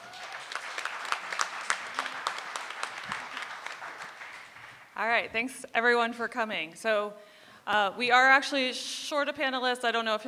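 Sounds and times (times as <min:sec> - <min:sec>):
audience applause: 0:00.0 - 0:05.0
speech: 0:05.0 - 0:10.2.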